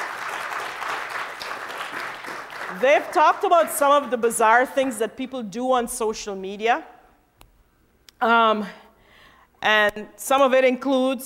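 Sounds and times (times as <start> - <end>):
audience applause for a panel of speakers: 0.0 - 3.3
speech: 2.7 - 6.9, 8.2 - 8.8, 9.6 - 11.2.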